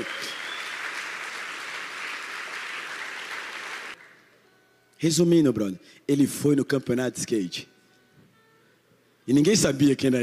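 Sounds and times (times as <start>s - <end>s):
crowd applauding: 0.0s - 4.2s
speech: 5.0s - 7.7s, 9.3s - 10.2s.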